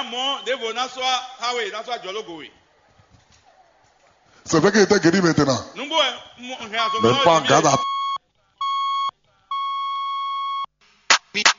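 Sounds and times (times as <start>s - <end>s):
speech: 0.0s - 2.6s, 4.5s - 8.0s
telephone beeps: 6.8s - 10.7s.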